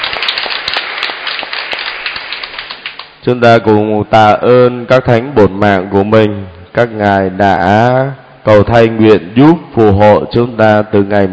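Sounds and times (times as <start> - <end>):
congregation applauding on the feast of All Saints: 0.0 - 3.2
speech: 3.2 - 11.3.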